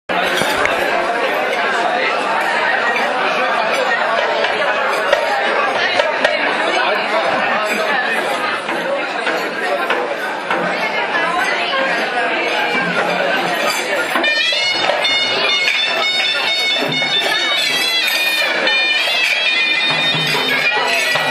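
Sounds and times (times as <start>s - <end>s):
Tunisian New Year's Eve party ambience: 0.1s - 21.2s.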